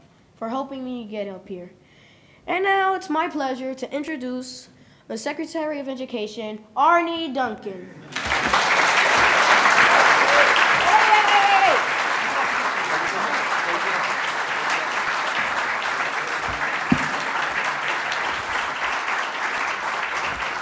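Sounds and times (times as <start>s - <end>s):
speech: 0.4s - 1.8s, 2.4s - 8.2s
audience applause: 8.1s - 20.6s.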